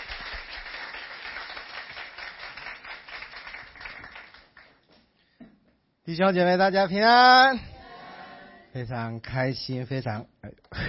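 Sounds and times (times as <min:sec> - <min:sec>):
audience applause welcoming a speaker: 0:00.0 - 0:04.7
speech: 0:06.1 - 0:07.7, 0:08.7 - 0:10.8.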